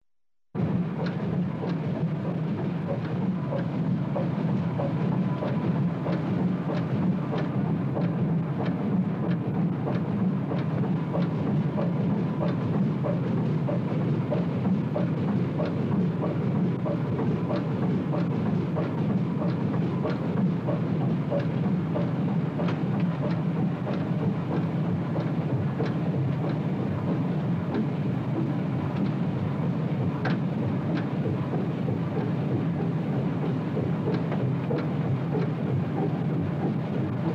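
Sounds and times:
engine room on a ship: 0:00.6 - 0:37.3.

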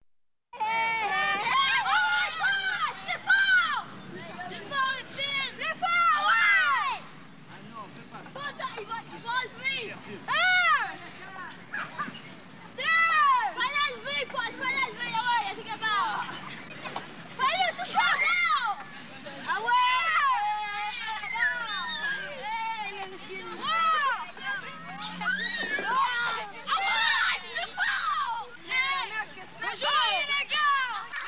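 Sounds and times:
French children on a playground: 0:00.6 - 0:31.2.

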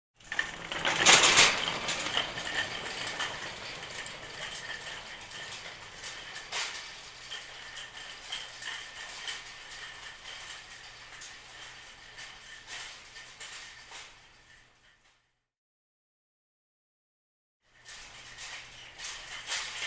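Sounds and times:
shopping cart rolling in a store: 0:00.2 - 0:15.0, 0:17.7 - 0:19.8.

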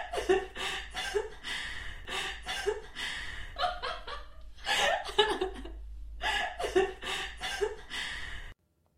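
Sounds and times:
girl laughing in 3D sound: 0:00.0 - 0:01.4, 0:02.4 - 0:07.9.

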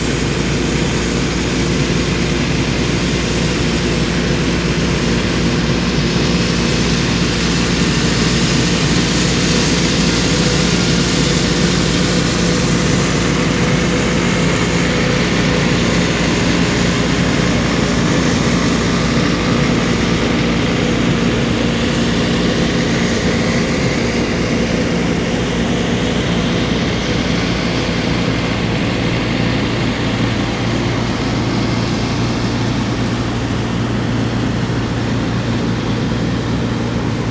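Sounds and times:
combine harvester working: 0:00.0 - 0:37.2.

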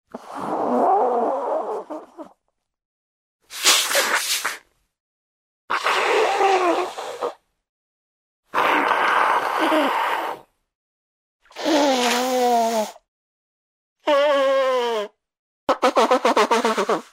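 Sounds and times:
person blowing nose: 0:00.2 - 0:02.3, 0:03.5 - 0:04.6, 0:05.7 - 0:07.4, 0:08.6 - 0:10.4, 0:11.6 - 0:13.0, 0:14.1 - 0:15.1, 0:15.7 - 0:17.1.

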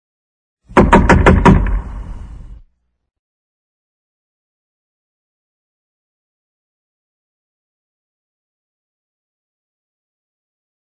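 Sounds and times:
knocking on a door: 0:00.7 - 0:01.9.

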